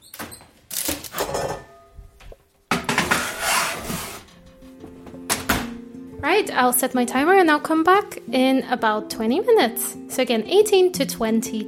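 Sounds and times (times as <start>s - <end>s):
baking tray being slid into an oven: 2.9s - 4.3s
speech: 6.4s - 11.6s.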